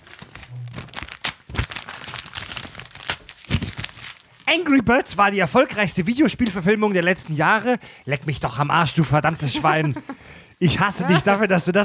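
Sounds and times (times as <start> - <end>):
sheet of paper being grabbed and crumpled: 0.0 - 4.4
speech: 4.5 - 11.8
laughter: 9.3 - 11.4.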